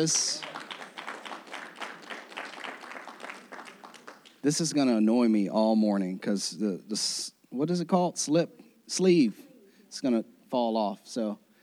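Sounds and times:
speech: 0.0 - 0.5, 4.4 - 11.4
audience clapping: 0.0 - 4.7.

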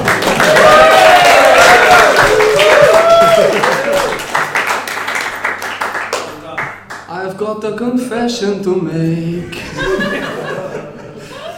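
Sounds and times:
crowd applauding: 0.0 - 7.1
crowd cheering and shouting: 0.3 - 4.2
speech: 7.5 - 10.1
laughter: 9.6 - 11.5.

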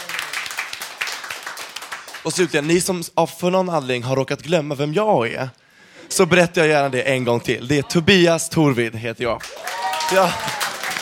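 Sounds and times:
audience applause: 0.0 - 2.7, 9.4 - 10.9
speech: 2.2 - 10.6.

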